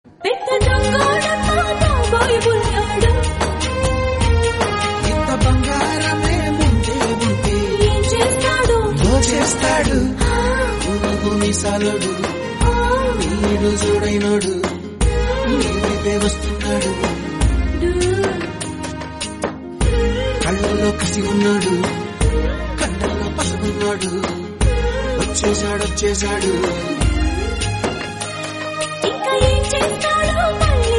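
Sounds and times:
Telugu song: 0.1s - 30.9s.

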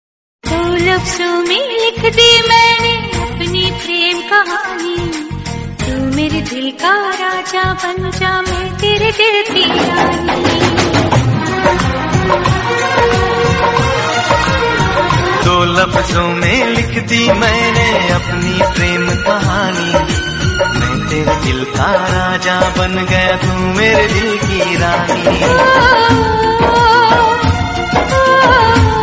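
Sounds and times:
Hindi love song: 0.5s - 29.0s.

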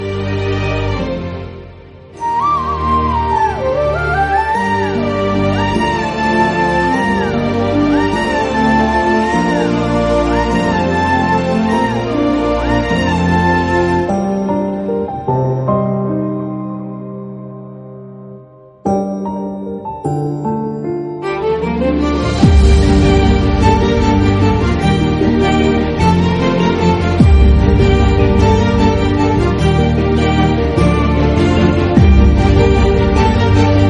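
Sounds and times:
flute instrumental: 0.0s - 17.3s, 18.8s - 33.8s.

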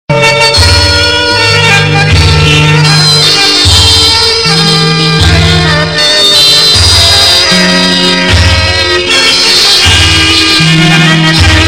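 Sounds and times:
Pashto instrumental song: 0.1s - 11.6s.

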